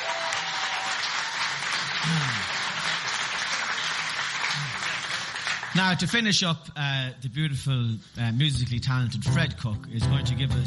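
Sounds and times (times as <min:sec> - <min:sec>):
audience applause: 0:00.0 - 0:06.0
speech: 0:05.8 - 0:10.6.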